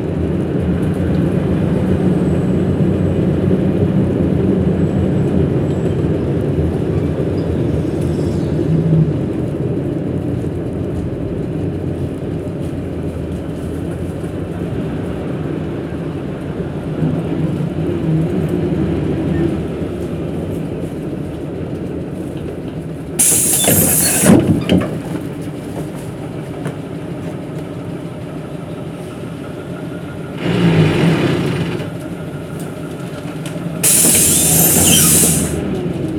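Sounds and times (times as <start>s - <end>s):
bus: 0.0s - 36.1s.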